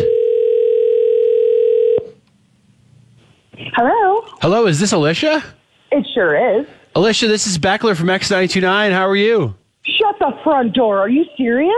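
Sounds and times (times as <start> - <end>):
telephone dial tone: 0.0 - 2.2
speech: 3.8 - 9.6, 10.2 - 11.7.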